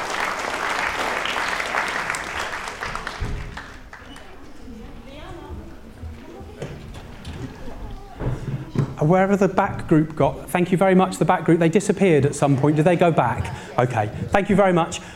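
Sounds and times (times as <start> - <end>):
audience applause: 0.0 - 4.5
speech: 9.0 - 15.1.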